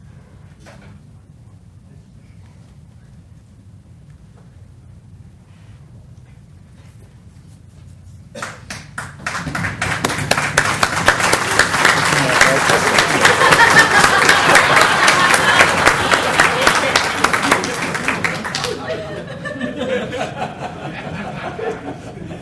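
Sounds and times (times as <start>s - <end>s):
big round of applause: 8.4s - 19.1s
laughter: 11.2s - 22.4s.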